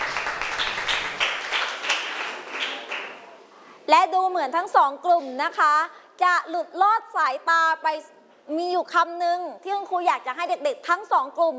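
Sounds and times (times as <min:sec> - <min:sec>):
students applauding in a classroom: 0:00.0 - 0:03.3
speech: 0:04.0 - 0:11.5.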